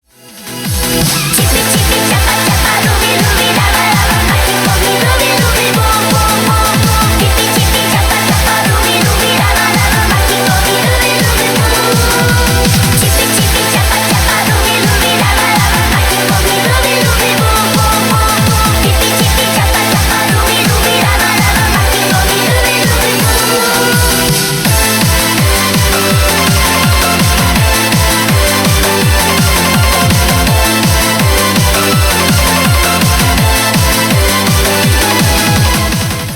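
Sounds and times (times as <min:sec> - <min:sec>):
Eurobeat remix: 0:00.1 - 0:36.3.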